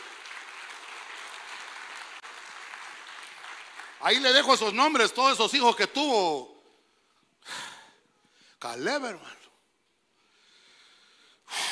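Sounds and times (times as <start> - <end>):
audience clapping: 0.0 - 5.4
speech: 4.0 - 6.5, 8.6 - 9.4.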